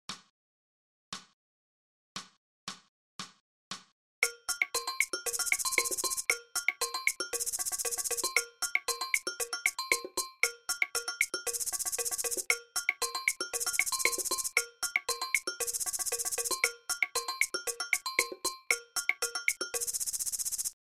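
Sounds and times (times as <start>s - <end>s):
maracas: 4.2s - 20.8s.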